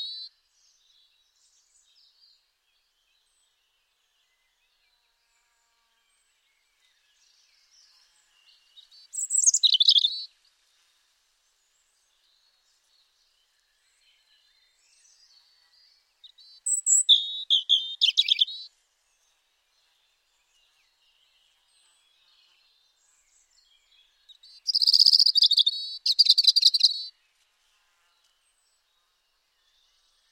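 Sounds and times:
European robin song: 0.0s - 0.3s, 8.7s - 10.3s, 14.6s - 19.3s, 20.5s - 27.1s.

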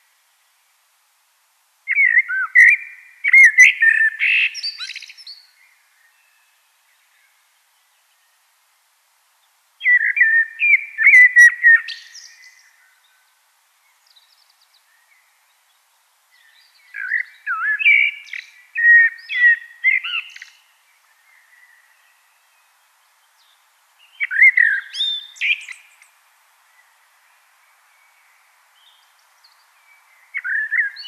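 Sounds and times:
steady hiss: 0.0s - 31.0s
common blackbird fluty whistled song: 1.9s - 7.3s, 9.8s - 13.2s, 16.3s - 22.7s, 23.4s - 26.1s, 27.9s - 31.0s.

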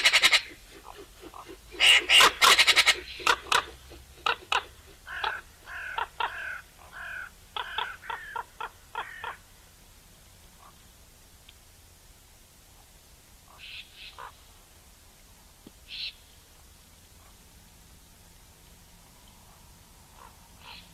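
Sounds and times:
Eurasian magpie Pica pica harsh rasping chacks and squeaky notes: 0.0s - 9.4s.

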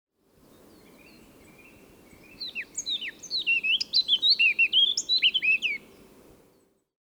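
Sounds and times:
background hiss: 0.3s - 6.7s
Eurasian blackcap singing: 0.5s - 6.6s.

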